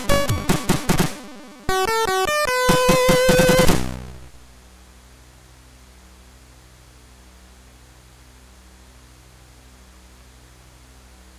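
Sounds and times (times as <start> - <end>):
koto cover on MOS6581R2 sound chip: 0.0 - 1.6, 2.6 - 4.1.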